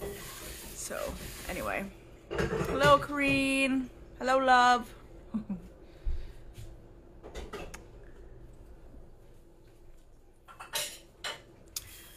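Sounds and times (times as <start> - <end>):
dishes being washed: 0.0 - 3.6, 10.4 - 11.5
speech: 0.9 - 5.7.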